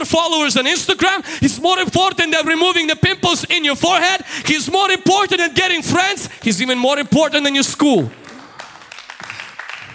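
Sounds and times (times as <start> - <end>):
speech: 0.0 - 8.2
audience clapping: 7.9 - 9.9.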